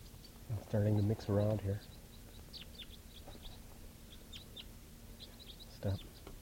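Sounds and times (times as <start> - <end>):
flock of wild birds chirping: 0.0 - 6.4
speech: 0.7 - 1.9, 5.8 - 6.1.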